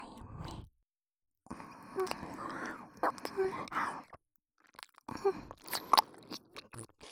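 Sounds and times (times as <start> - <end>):
ear licking in the right ear: 2.0 - 3.8, 4.6 - 7.1.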